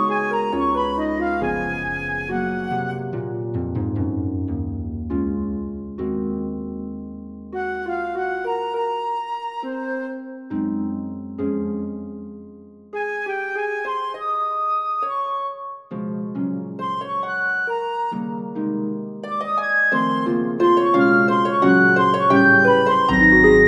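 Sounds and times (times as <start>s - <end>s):
flute playing a nocturne: 0.0s - 3.3s, 7.6s - 10.5s, 13.0s - 15.9s, 16.8s - 23.6s
harp playing a nocturne: 0.0s - 23.6s.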